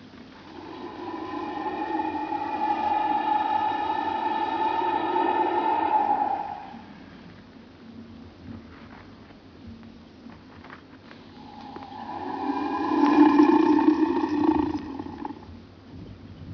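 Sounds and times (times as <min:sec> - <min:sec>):
crocodile growl: 0:00.4 - 0:07.0, 0:11.4 - 0:15.5.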